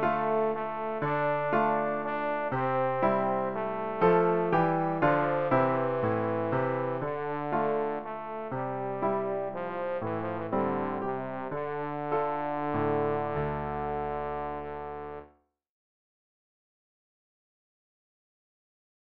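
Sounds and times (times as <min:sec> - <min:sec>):
trombone: 0:00.0 - 0:15.3.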